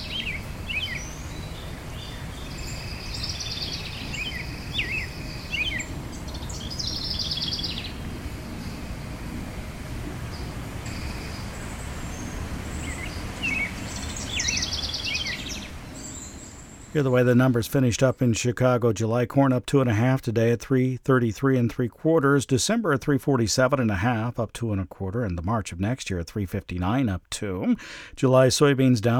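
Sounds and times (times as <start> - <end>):
insect hum in a backyard: 0.0 - 17.3
low outdoor rumble: 0.0 - 18.6
birds chirping and twittering in a backyard: 0.0 - 18.8
speech: 17.0 - 29.1.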